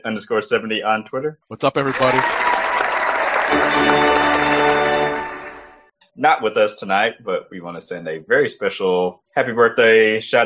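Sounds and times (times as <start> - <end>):
speech: 0.0 - 2.6, 6.2 - 10.4
applause: 1.6 - 5.8.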